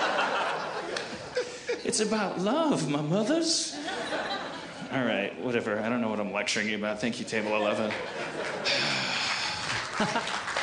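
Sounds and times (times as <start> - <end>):
laughter: 0.0 - 1.8, 3.8 - 4.9, 7.4 - 10.6
speech: 1.9 - 3.8, 4.9 - 8.9, 10.0 - 10.2
small group applauding: 7.8 - 10.6.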